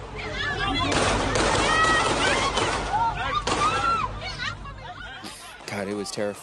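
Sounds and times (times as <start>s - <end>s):
screams of people running: 0.1s - 6.4s
rapid sequence of gunshots: 0.8s - 3.7s
speech: 6.0s - 6.4s.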